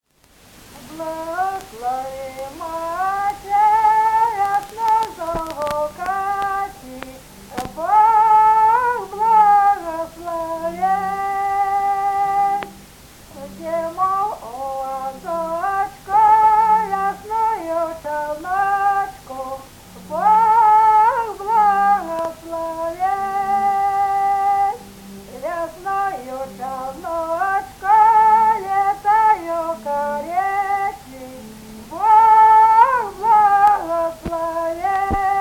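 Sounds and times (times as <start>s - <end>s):
folk calling song: 0.3s - 35.4s.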